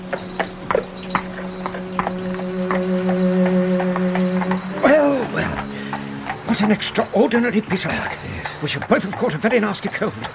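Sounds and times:
low hum: 0.0 - 7.7
hooves of a horse drawing a cab clip-clopping: 0.0 - 10.3
speech: 0.1 - 0.5, 6.6 - 10.3.

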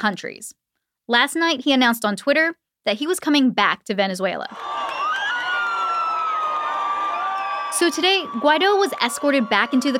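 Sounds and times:
speech: 0.0 - 4.8, 7.7 - 9.9
large crowd cheering and shouting in the street: 4.5 - 9.9
whoops and whistles: 4.6 - 9.8.

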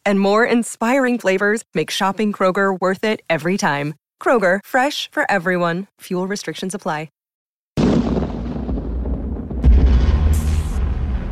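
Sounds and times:
speech: 0.0 - 7.2
thunder crack and rumble: 7.8 - 11.3.

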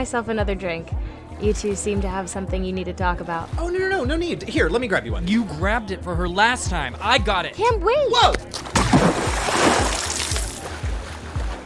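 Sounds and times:
speech: 0.0 - 8.6
person falling into water with a splash: 8.4 - 11.6.

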